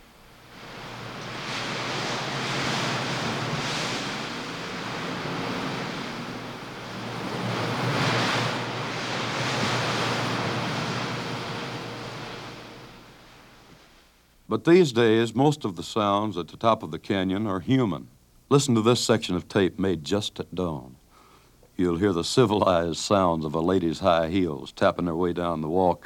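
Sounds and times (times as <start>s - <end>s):
constant wind whipping scrubby pine trees on the canyon edge: 0.0s - 14.2s
speech: 14.5s - 20.9s, 21.8s - 26.0s.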